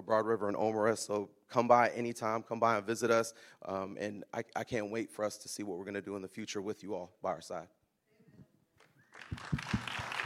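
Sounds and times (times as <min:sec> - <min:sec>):
speech: 0:00.1 - 0:07.8
audience clapping: 0:08.8 - 0:10.2.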